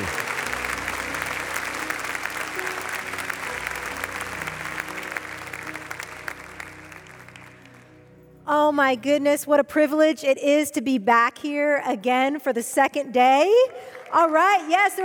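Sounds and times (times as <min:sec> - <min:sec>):
audience applause welcoming a guest speaker at First Orlando: 0:00.0 - 0:08.0
speech: 0:08.8 - 0:15.0.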